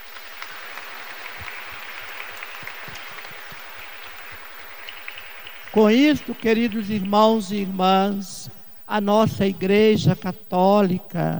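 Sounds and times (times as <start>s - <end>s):
audience applause: 0.0s - 8.0s
speech: 5.7s - 11.3s.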